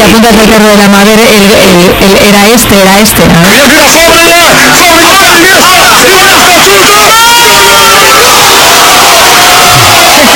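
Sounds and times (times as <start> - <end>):
speech: 0.1 - 4.8, 5.4 - 7.3
crowd shouting along with a commentator: 3.4 - 10.3.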